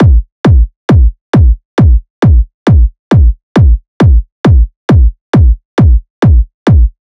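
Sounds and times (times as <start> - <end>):
techno kick drum loop at 135 bpm: 0.0 - 7.0.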